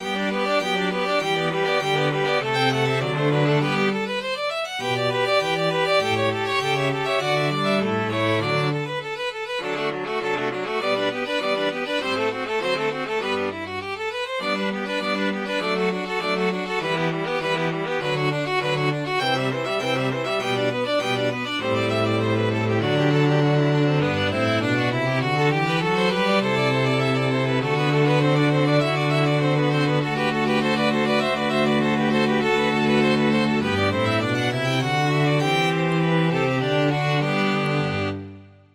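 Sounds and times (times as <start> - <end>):
string quartet: 0.0 - 38.7.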